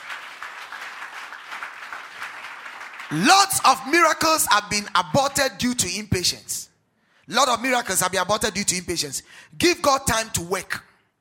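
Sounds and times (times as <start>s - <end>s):
audience clapping: 0.0s - 3.8s
speech: 3.1s - 6.7s, 7.3s - 10.9s.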